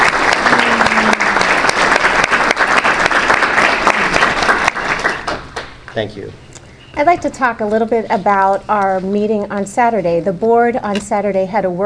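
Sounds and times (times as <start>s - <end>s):
audience applause: 0.0s - 5.7s
speech: 6.0s - 11.8s.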